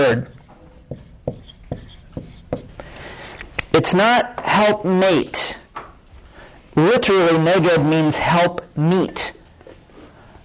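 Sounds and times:
speech: 0.0 - 0.4, 3.8 - 5.4, 6.8 - 9.4
handwriting strokes writing a word: 0.0 - 2.8.

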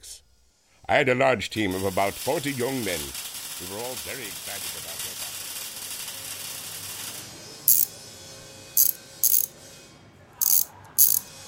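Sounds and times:
speech: 0.9 - 4.9
ratcheting clicks of a bolt being tightened on a mechanical man: 3.1 - 7.1, 7.7 - 7.9, 8.8 - 9.5, 10.4 - 11.2.

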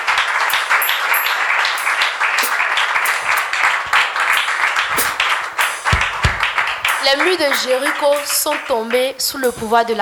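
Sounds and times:
audience applauding: 0.0 - 9.0
speech: 7.0 - 10.0.

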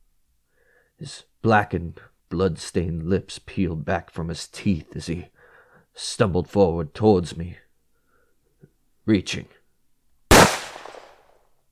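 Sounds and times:
speech: 1.0 - 5.3, 6.0 - 7.6, 9.0 - 9.6
gunshot: 10.3 - 11.3.

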